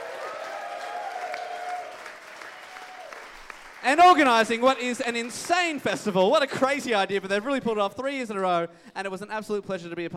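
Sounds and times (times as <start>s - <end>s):
audience applause: 0.0s - 5.9s
speech: 3.8s - 10.1s.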